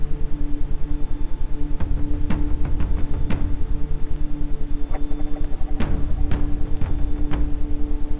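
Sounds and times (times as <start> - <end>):
ambient sound: 0.1 - 8.1
isochronic tones: 4.4 - 8.1.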